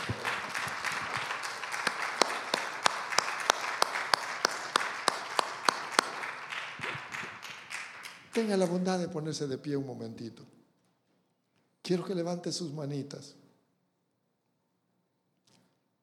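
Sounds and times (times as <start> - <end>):
audience applause: 0.0 - 8.8
speech: 8.4 - 10.6, 11.9 - 13.4.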